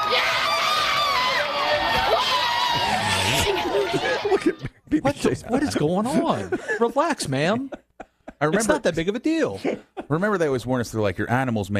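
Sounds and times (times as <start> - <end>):
large crowd cheering and shouting: 0.0 - 4.6
laughter: 2.8 - 10.4
speech: 4.4 - 7.8, 8.4 - 11.7.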